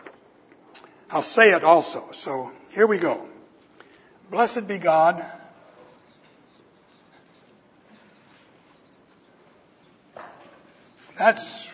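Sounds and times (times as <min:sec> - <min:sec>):
speech: 0:01.1 - 0:03.3, 0:04.3 - 0:05.4, 0:11.2 - 0:11.6
writing scratching on a board: 0:05.4 - 0:11.7.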